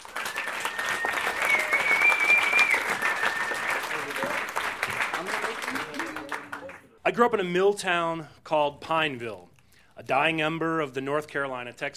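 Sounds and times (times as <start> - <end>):
audience applause at a live storytelling event: 0.0 - 6.9
speech: 7.2 - 11.9.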